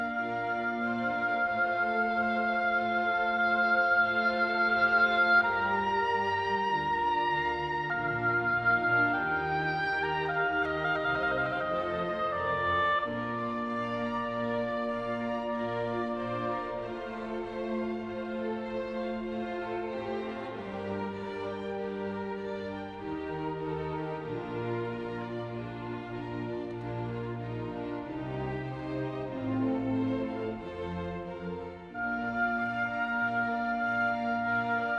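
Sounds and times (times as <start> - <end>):
chamber orchestra playing a concerto: 0.0 - 34.9.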